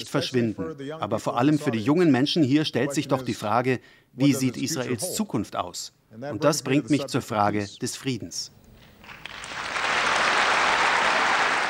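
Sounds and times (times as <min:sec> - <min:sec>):
speech: 0:00.0 - 0:08.6
standing applause from large audience: 0:09.0 - 0:11.6.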